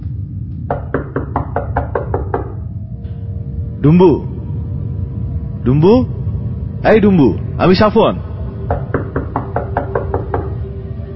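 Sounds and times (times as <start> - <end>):
low hum: 0.0 - 11.1
speech: 0.7 - 0.9, 3.8 - 4.3, 5.6 - 6.2, 6.8 - 8.9
knocking on a door: 0.7 - 2.6, 8.6 - 10.7.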